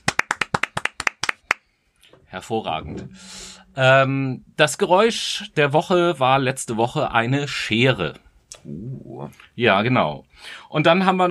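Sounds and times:
hands clapping: 0.0 - 1.7
speech: 2.3 - 11.2.

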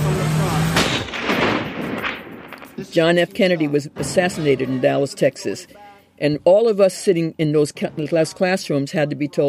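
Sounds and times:
gunshot: 0.7 - 2.8
speech: 2.8 - 9.4.

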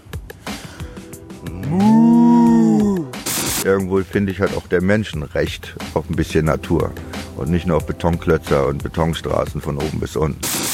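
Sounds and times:
soft shuffling breath sounds: 0.3 - 1.2
person imitating a cow's moo: 1.4 - 3.2
speech: 3.6 - 10.7.

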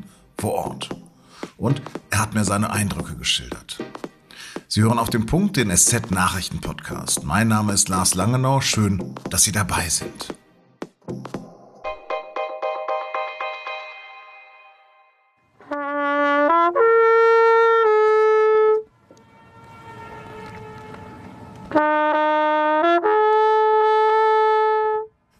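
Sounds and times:
speech: 0.4 - 1.0, 1.6 - 4.0, 4.7 - 10.4
trumpet echoing across an alpine lake: 13.5 - 25.1.

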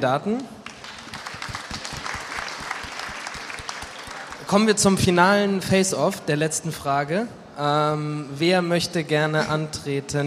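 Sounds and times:
speech: 0.0 - 0.6, 4.5 - 10.2
audience applause: 0.6 - 4.8.

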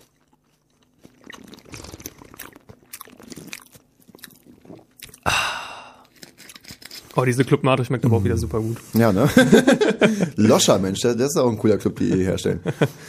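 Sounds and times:
chewing a Corny peanut and salt snack bar: 0.0 - 7.4
speech: 7.2 - 13.0.

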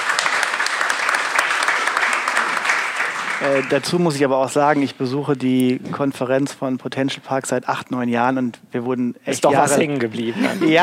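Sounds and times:
audience applause: 0.0 - 4.2
speech: 3.4 - 10.8.

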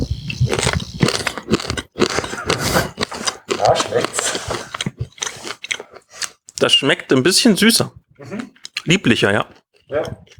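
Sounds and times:
chewing wheat malt grains without husks: 0.0 - 10.3
speech: 6.6 - 8.0, 8.9 - 10.2.

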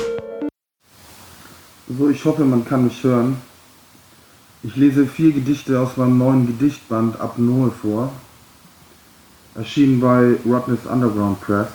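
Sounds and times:
electronic tone of a call accepted into a conference line: 0.0 - 0.5
faint line hiss: 0.8 - 11.7
speech: 1.9 - 3.5, 4.6 - 8.3, 9.6 - 11.7.

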